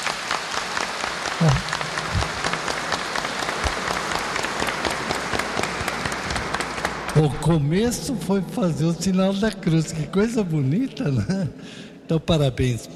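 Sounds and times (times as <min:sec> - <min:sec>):
audience clapping: 0:00.0 - 0:07.4
speech: 0:01.4 - 0:01.7, 0:07.2 - 0:12.9.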